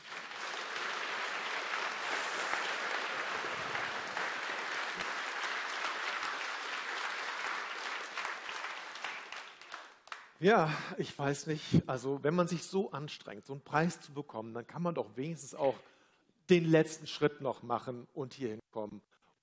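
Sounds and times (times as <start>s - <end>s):
audience applause: 0.0s - 10.3s
speech: 10.4s - 15.9s, 16.5s - 19.4s.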